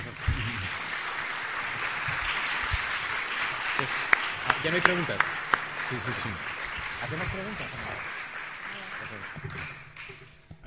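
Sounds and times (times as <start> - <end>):
audience applause: 0.0 - 10.3
speech: 4.6 - 8.2.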